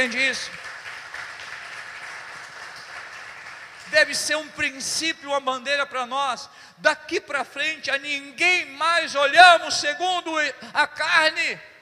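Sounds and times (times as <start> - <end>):
speech: 0.0 - 0.7, 3.9 - 11.7
audience applause: 0.0 - 4.2.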